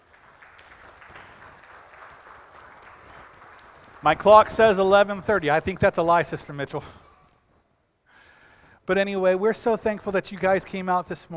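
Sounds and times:
audience applause: 0.0 - 5.0
speech: 4.0 - 7.0, 8.9 - 11.3.

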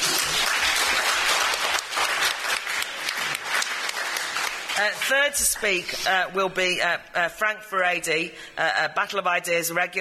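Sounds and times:
audience applause welcoming a speaker at a debate event: 0.0 - 5.2
speech: 4.8 - 10.0.

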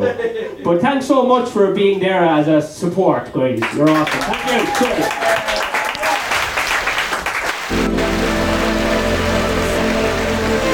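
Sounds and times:
speech: 0.0 - 5.5
added applause sound effect: 3.6 - 10.7.

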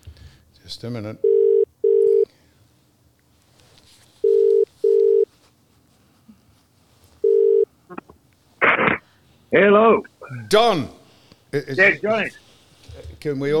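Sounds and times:
speech: 0.7 - 1.4, 9.5 - 12.4, 13.2 - 13.5
telephone ringing tone on the line: 1.2 - 2.2, 4.2 - 5.3, 7.2 - 7.7.

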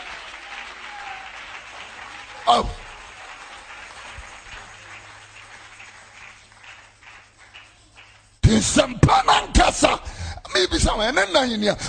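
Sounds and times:
many hands clapping: 0.0 - 9.0
speech: 2.5 - 2.8, 8.6 - 9.2, 10.6 - 11.8.

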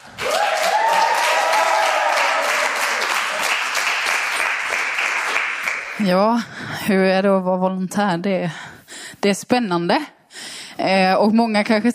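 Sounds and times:
audience applause: 0.0 - 6.0
speech: 6.0 - 10.2, 10.8 - 11.9.

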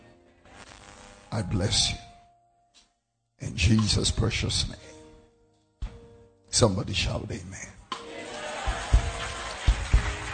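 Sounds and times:
speech: 1.3 - 2.1, 3.6 - 4.9, 6.6 - 7.8
audience clapping: 8.1 - 10.3.

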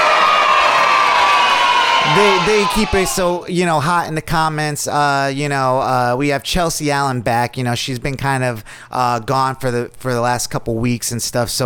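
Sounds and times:
round of applause: 0.0 - 3.1
speech: 2.2 - 11.6.

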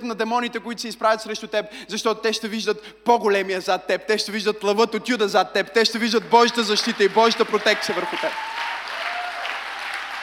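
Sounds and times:
speech: 0.0 - 8.7
audience applause: 6.7 - 10.2.

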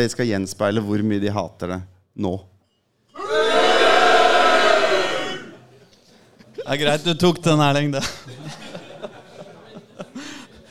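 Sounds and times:
speech: 0.0 - 2.5, 6.7 - 8.8
audience booing: 3.2 - 5.6
laughter: 8.0 - 10.6.

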